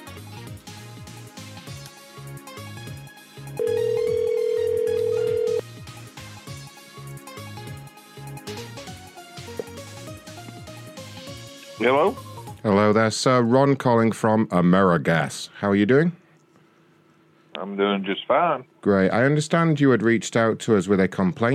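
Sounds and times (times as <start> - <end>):
music: 0.0 - 14.2
telephone ringing while calling a home number: 3.6 - 5.6
speech: 11.8 - 16.2, 17.6 - 21.5.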